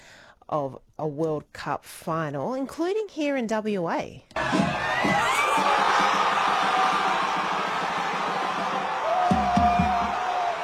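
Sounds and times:
speech: 0:00.5 - 0:05.4
high whoops and yells: 0:04.4 - 0:10.6
pub crowd cheering football final win: 0:04.4 - 0:10.6.

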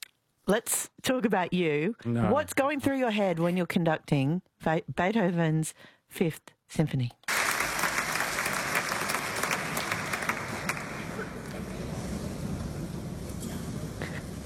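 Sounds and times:
speech: 0:00.5 - 0:07.2
audience applause in a concert hall: 0:07.3 - 0:14.4.

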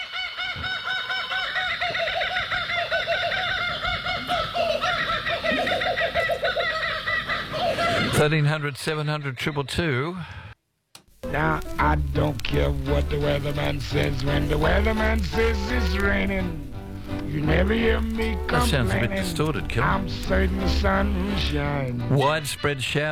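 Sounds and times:
kookaburras laughing: 0:00.0 - 0:10.0, 0:14.5 - 0:16.4, 0:17.4 - 0:23.0
speech: 0:08.2 - 0:10.4, 0:11.3 - 0:23.0.

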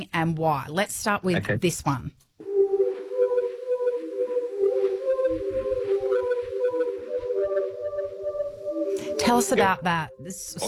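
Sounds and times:
speech: 0:00.0 - 0:02.3, 0:09.2 - 0:10.6
swirled plastic pipe sounding bugle notes: 0:02.4 - 0:09.9.

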